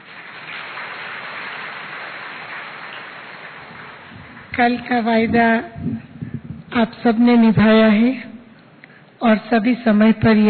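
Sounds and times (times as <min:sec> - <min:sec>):
audience clapping: 0:00.0 - 0:04.9
speech: 0:04.6 - 0:06.0, 0:06.8 - 0:08.3, 0:09.2 - 0:10.4.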